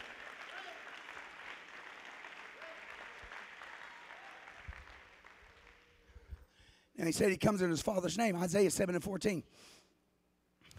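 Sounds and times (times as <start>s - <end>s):
audience clapping hands: 0.0s - 6.6s
speech: 7.0s - 9.8s.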